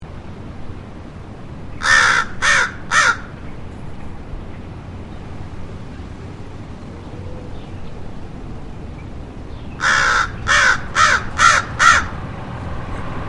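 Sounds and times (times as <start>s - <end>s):
American crow Corvus brachyrhynchos cawing: 1.8s - 3.4s, 9.8s - 12.2s.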